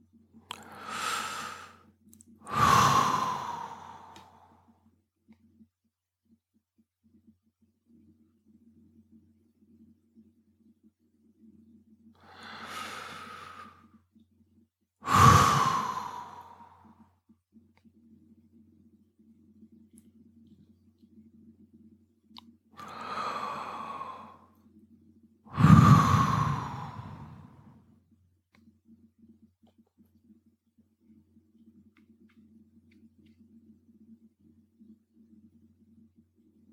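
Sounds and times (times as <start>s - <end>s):
slow audible breathing during a breathing exercise: 0.5s - 1.8s, 2.5s - 4.6s, 12.2s - 13.9s, 15.0s - 17.0s, 22.8s - 24.5s, 25.5s - 27.8s.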